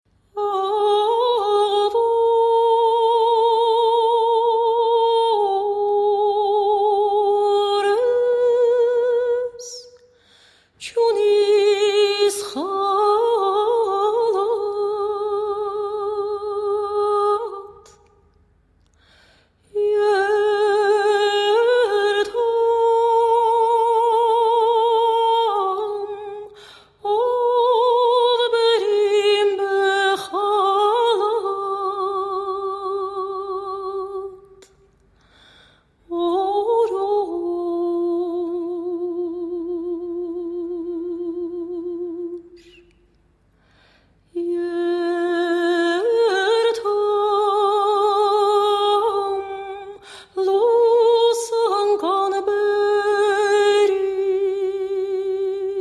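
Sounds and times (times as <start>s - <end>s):
lullabies: 0.2s - 55.7s.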